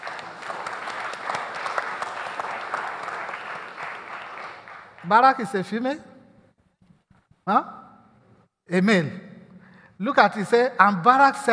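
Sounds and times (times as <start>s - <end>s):
audience clapping hands in steady dense applause: 0.0s - 5.8s
speech: 5.0s - 6.1s, 7.5s - 7.8s, 8.7s - 9.2s, 10.0s - 11.5s.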